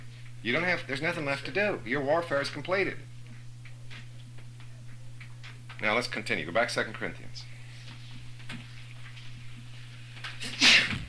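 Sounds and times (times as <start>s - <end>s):
low steady hum: 0.0s - 11.0s
speech: 0.4s - 3.2s, 5.8s - 7.5s
sneeze: 10.4s - 11.0s.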